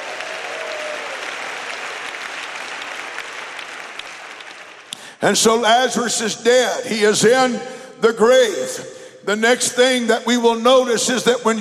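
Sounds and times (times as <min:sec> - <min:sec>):
audience clapping hands: 0:00.0 - 0:05.2
speech: 0:05.2 - 0:11.5.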